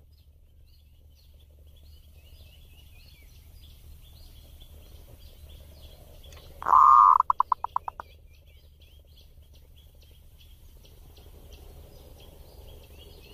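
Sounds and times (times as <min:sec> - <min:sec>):
zebra dove singing warbling coo phrases: 0:06.5 - 0:08.0.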